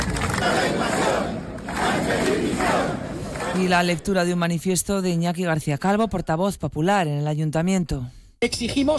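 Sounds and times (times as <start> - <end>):
crowd shouting at a rally: 0.2 - 3.7
speech: 3.6 - 8.9.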